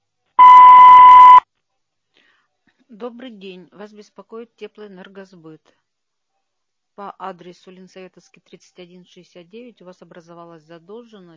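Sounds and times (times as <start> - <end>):
voicemail beep tone: 0.4 - 1.4
speech: 2.9 - 5.8, 7.0 - 11.3.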